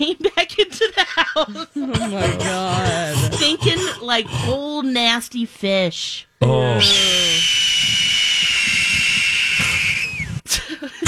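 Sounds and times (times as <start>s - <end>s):
laughter: 0.0s - 4.6s, 8.5s - 11.0s
speech: 1.4s - 8.1s
hawk call: 6.8s - 10.4s.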